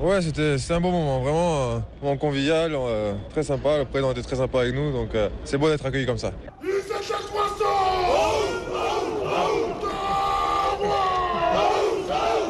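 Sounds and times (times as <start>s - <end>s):
speech: 0.0s - 7.2s
handball team shouting its war cry together beneath the Élysée Palace front steps: 6.6s - 12.4s.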